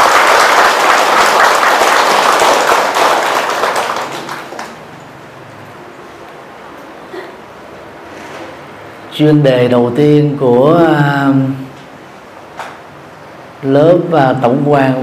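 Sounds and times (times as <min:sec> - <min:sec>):
audience applause: 0:00.0 - 0:05.0
speech: 0:09.2 - 0:11.6, 0:13.6 - 0:15.0.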